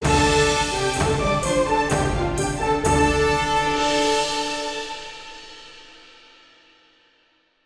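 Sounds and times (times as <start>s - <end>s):
victory jingle: 0.0s - 5.4s.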